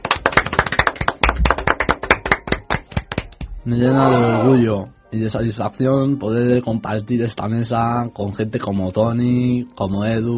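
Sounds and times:
small group clapping at a gaming show table: 0.0 - 3.6
speech: 3.6 - 10.3.

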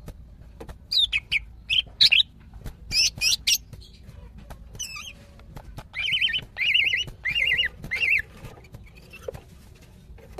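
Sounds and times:
female greater green leafbird calling: 0.9 - 4.1, 4.7 - 9.4.

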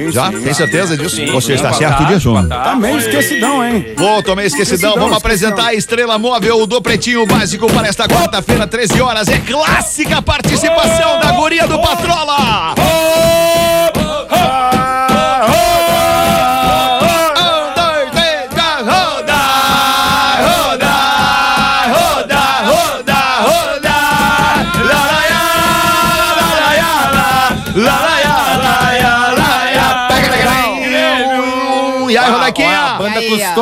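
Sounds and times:
speech: 0.0 - 13.7
end-of-season football crowd cheering and chanting: 0.0 - 33.5.

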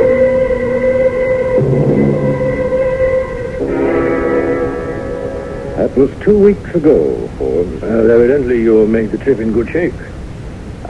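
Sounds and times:
horn of a passenger train to Ossining: 0.0 - 5.8
constant rumbling: 0.0 - 10.8
speech: 5.9 - 10.1.

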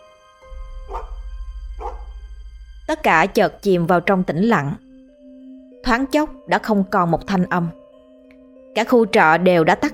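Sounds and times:
steady low rumble: 0.4 - 5.8
dog barking: 0.8 - 1.2, 1.8 - 2.1
speech: 2.9 - 4.8, 5.8 - 7.8, 8.8 - 9.9.

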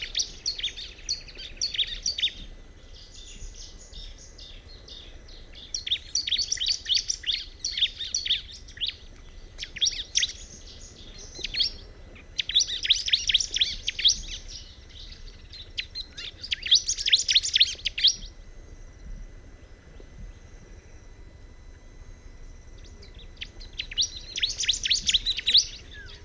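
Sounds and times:
bar-winged prinia chirping song: 0.0 - 26.2.

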